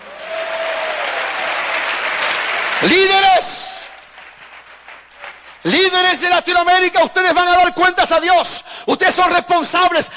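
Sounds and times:
audience applause: 0.0s - 5.8s
speech: 2.8s - 3.5s, 6.2s - 10.1s.

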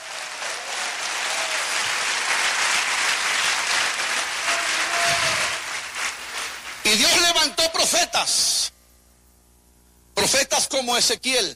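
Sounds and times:
audience applauding: 0.0s - 7.2s
speech: 6.9s - 8.7s, 10.2s - 11.5s.

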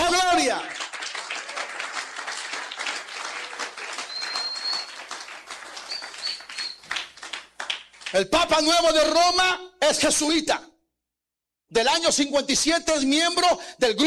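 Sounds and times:
crowd clapping: 0.0s - 8.3s
faint high chirps: 4.0s - 5.1s, 5.8s - 6.9s
speech: 8.1s - 10.7s, 11.7s - 14.0s.

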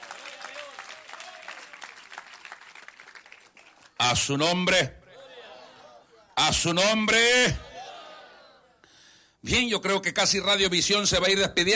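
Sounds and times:
audience applause: 0.0s - 4.0s
speech: 4.0s - 5.0s, 6.4s - 7.6s, 9.4s - 11.7s.

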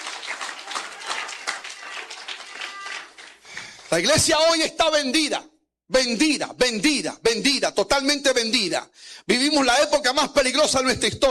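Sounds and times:
audience applauding: 0.0s - 4.2s
speech: 3.9s - 11.2s.

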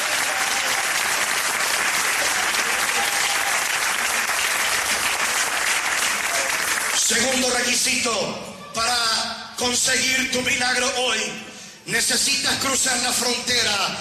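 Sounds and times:
audience applause: 0.0s - 7.2s
speech: 7.6s - 9.0s, 9.6s - 13.9s.

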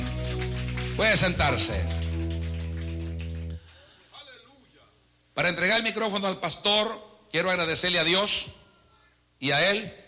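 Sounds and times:
church audience applauding: 0.0s - 4.1s
speech: 1.0s - 2.0s, 5.4s - 8.6s, 9.4s - 10.0s.

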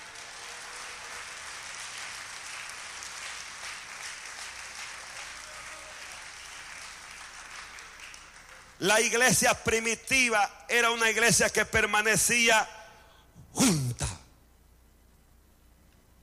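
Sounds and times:
audience applause: 0.0s - 8.8s
speech: 8.8s - 12.8s, 13.5s - 13.8s.

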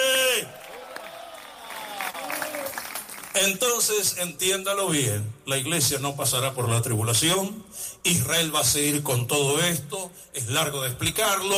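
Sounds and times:
audience applauding: 0.0s - 3.4s
speech: 3.4s - 11.5s.

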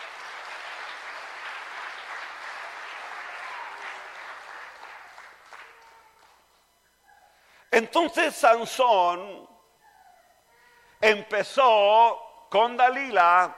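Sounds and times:
audience applause: 0.0s - 6.4s
speech: 7.8s - 9.5s, 11.0s - 13.5s.

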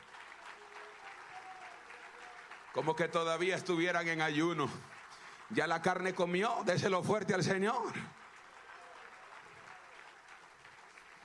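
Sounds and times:
applause: 0.0s - 11.2s
speech: 2.8s - 8.2s.

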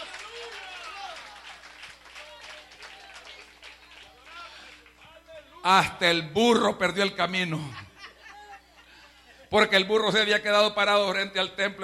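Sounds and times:
audience applause: 0.0s - 4.9s
excited voices and cheers of crowd: 0.0s - 5.5s
speech: 5.6s - 7.8s, 9.5s - 11.8s
laughter: 7.5s - 9.5s.

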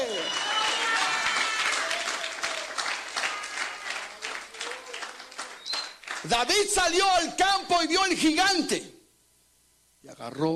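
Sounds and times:
audience applauding: 0.0s - 6.9s
speech: 6.2s - 8.9s, 10.2s - 10.5s.

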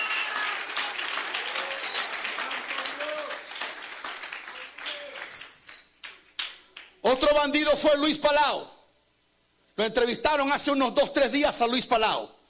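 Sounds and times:
crowd applauding: 0.0s - 7.0s
speech: 7.0s - 8.8s, 9.8s - 12.4s.

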